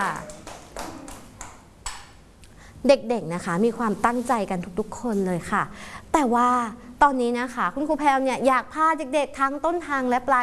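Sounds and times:
children clapping to cheer on a classmate: 0.0 - 2.2
speech: 2.8 - 10.4.

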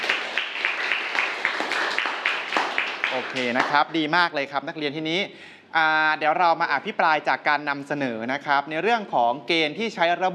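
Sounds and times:
students clapping: 0.0 - 3.8
speech: 3.1 - 10.3.

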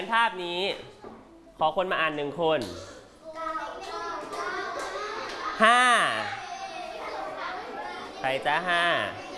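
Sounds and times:
speech: 0.1 - 1.0, 1.6 - 3.0, 5.6 - 6.4, 8.2 - 9.2
children clapping hands: 3.8 - 5.6.

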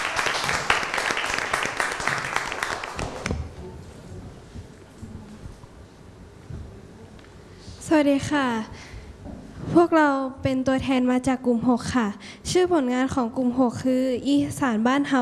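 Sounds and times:
crowd clapping: 0.0 - 3.6
faint shuffling: 3.3 - 10.0
speech: 8.0 - 8.8, 9.7 - 15.2.

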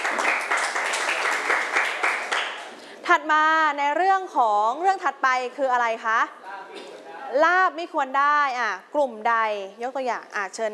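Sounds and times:
classroom applause for a student: 0.0 - 2.8
speech: 3.1 - 6.4, 7.3 - 10.7.

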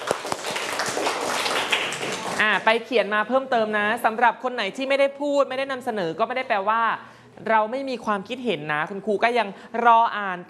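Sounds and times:
class applauding two students: 0.0 - 2.6
speech: 2.4 - 10.4.

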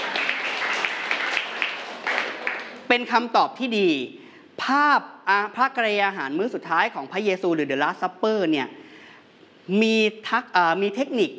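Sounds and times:
group applauding a contestant: 0.0 - 2.9
speech: 2.9 - 8.8, 9.7 - 11.3.

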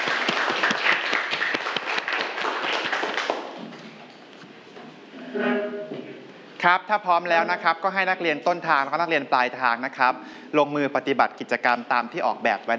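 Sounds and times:
students clapping hands: 0.0 - 3.8
speech: 6.6 - 12.7.

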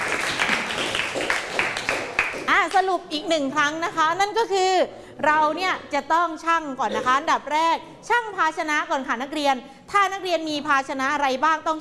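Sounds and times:
students applauding: 0.0 - 2.5
speech: 2.6 - 11.7.

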